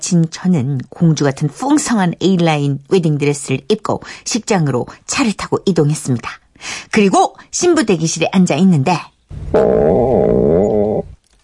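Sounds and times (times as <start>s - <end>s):
speech: 0.1s - 11.0s
stomach rumbling from hunger: 9.3s - 11.4s.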